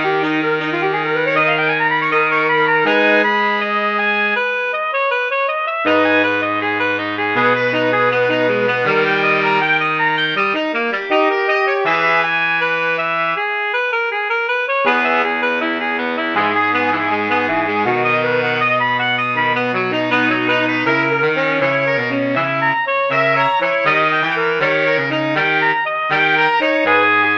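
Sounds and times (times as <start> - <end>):
MIDI saxophone quartet: 0.0 - 27.3.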